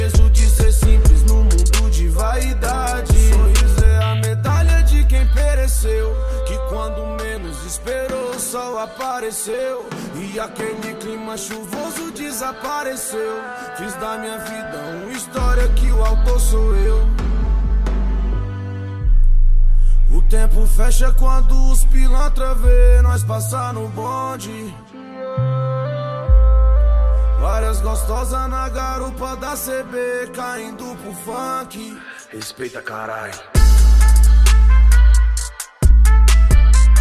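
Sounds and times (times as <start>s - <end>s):
favela-made hip hop bass: 0.0s - 9.4s, 15.2s - 24.5s, 25.9s - 30.0s, 32.4s - 36.9s.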